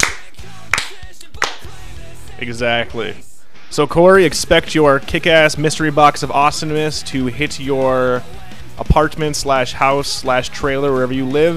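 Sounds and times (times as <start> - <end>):
sarcastic hand clapping: 0.0 - 1.7
speech: 2.4 - 11.5.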